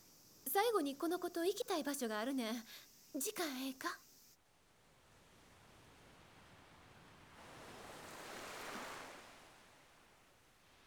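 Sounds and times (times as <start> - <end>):
speech: 0.6 - 4.0
ocean waves on shore: 5.3 - 10.8.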